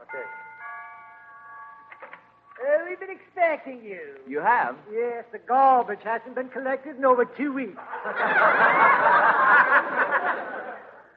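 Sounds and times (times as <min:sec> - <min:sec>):
doorbell ringing: 0:00.0 - 0:02.6
speech: 0:02.9 - 0:10.6
laughter: 0:07.8 - 0:11.1.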